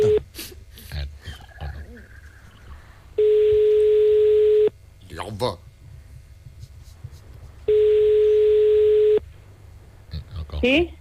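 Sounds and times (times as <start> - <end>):
telephone tone while placing a call: 3.2 - 4.7, 7.7 - 9.2
speech: 10.6 - 10.9.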